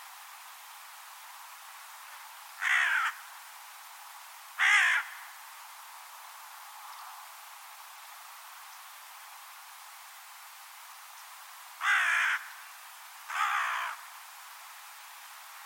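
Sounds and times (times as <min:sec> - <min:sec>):
bird cawing: 0:02.6 - 0:03.2, 0:04.6 - 0:05.3, 0:11.8 - 0:12.6, 0:13.3 - 0:14.1.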